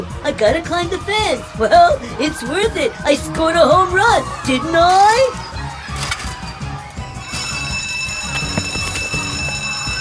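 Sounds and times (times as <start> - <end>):
speech: 0.0 - 5.5
school bell ringing: 7.2 - 9.9.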